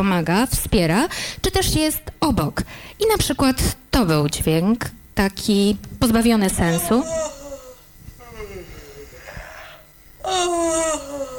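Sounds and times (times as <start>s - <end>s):
speech: 0.0s - 7.4s, 10.3s - 11.1s
yawning: 6.7s - 11.3s.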